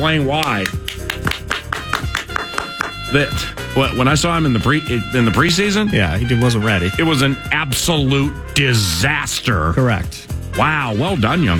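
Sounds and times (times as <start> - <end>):
speech: 0.0 - 1.0, 3.1 - 11.5
sharp hand claps: 0.2 - 3.2.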